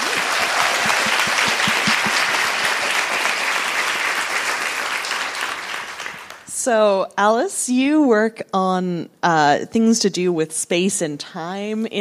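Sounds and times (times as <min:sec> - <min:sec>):
audience applause: 0:00.0 - 0:06.5
speech: 0:06.6 - 0:11.9.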